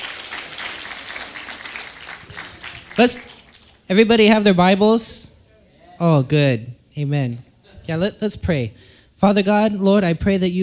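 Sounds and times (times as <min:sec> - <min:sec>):
audience applause: 0:00.0 - 0:03.8
speech: 0:03.0 - 0:05.3, 0:06.0 - 0:10.6.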